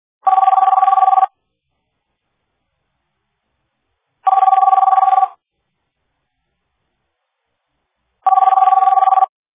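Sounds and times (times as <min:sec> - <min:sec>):
office phone ringing: 0:00.2 - 0:01.4, 0:04.2 - 0:05.4, 0:08.2 - 0:09.4.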